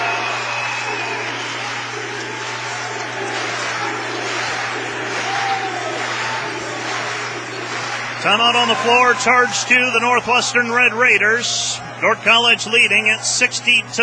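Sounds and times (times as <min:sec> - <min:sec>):
North College basketball arena crowd cheering: 0:00.0 - 0:14.0
speech: 0:08.2 - 0:14.0.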